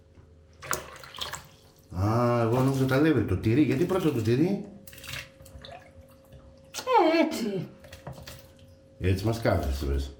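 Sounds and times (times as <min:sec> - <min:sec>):
water poured into flour for dough: 0:00.6 - 0:06.4
speech: 0:02.0 - 0:04.8, 0:09.0 - 0:10.1.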